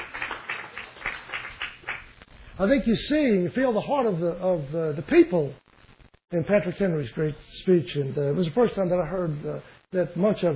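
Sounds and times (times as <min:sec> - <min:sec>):
hands clapping: 0:00.0 - 0:02.3
speech: 0:02.6 - 0:05.6, 0:06.3 - 0:10.5.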